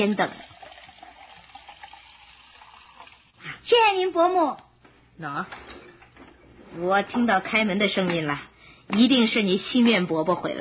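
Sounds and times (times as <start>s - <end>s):
speech: 0.0s - 0.5s, 3.6s - 5.7s, 6.7s - 10.5s
honey tea being poured into a cup: 0.0s - 3.4s.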